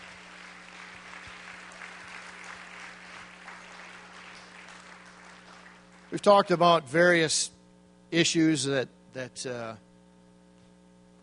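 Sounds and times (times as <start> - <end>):
audience applause: 0.0 - 6.4
low steady hum: 0.0 - 11.2
speech: 6.1 - 9.9.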